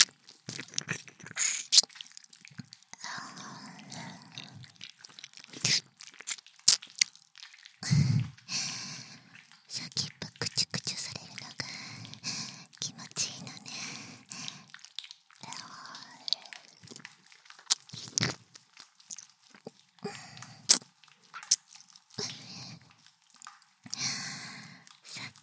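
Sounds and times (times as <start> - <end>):
ear licking recorded with binaural microphone: 0.0 - 25.4.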